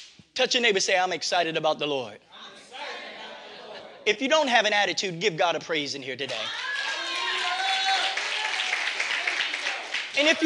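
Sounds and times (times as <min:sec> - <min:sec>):
speech: 0:00.4 - 0:02.6, 0:04.0 - 0:06.7, 0:10.2 - 0:10.4
people clapping hands: 0:06.2 - 0:10.4.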